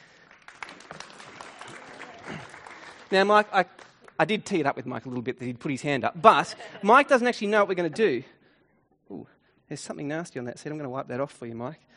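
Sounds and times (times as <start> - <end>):
audience clapping: 0.0 - 4.7
speech: 3.1 - 8.4, 9.1 - 11.9.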